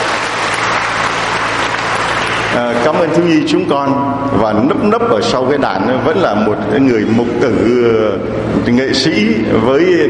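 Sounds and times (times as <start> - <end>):
church congregation applauding during a Tet celebration service: 0.0 - 3.2
speech: 2.6 - 10.0.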